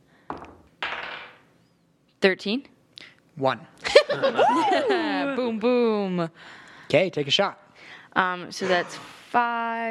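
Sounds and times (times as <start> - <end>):
dice clattering across a table: 0.3 - 1.4
speech: 2.2 - 2.7, 3.4 - 9.8
laughter: 3.8 - 5.3.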